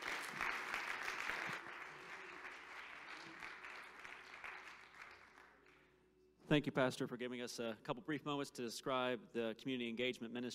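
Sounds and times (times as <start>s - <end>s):
audience clapping: 0.0s - 6.0s
speech: 6.5s - 10.5s.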